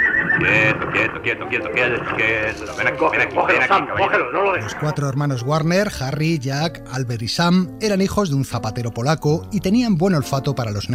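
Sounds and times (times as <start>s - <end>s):
horse neighing: 0.0s - 2.2s
speech: 0.4s - 10.9s.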